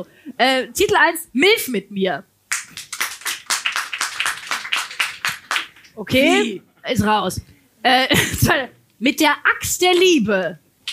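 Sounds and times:
speech: 0.0 - 2.3, 6.0 - 10.6
audience clapping: 2.5 - 6.4
laughter: 6.2 - 6.5.

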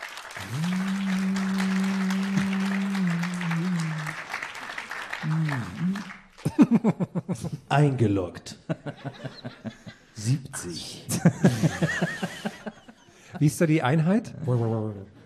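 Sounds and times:
audience applause: 0.0 - 6.9
speech: 0.4 - 0.8, 6.7 - 12.2, 13.4 - 15.1
laughter: 0.4 - 7.7, 8.6 - 10.2, 11.0 - 13.6.

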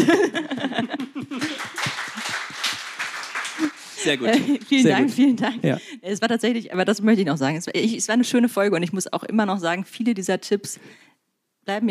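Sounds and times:
people laughing: 0.0 - 5.8
applause: 1.4 - 4.9
speech: 4.0 - 11.1, 11.7 - 11.9.

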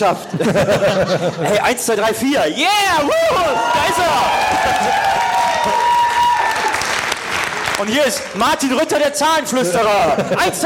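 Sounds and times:
laughter: 0.0 - 2.2, 9.5 - 10.6
speech: 0.0 - 5.9, 7.8 - 10.6
audience applause at a live comedy show: 3.5 - 8.9.

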